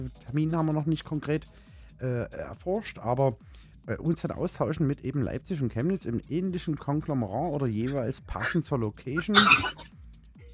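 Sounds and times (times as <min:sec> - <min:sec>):
speech: 0:00.0 - 0:10.0
sneeze: 0:07.9 - 0:08.6, 0:09.2 - 0:09.9.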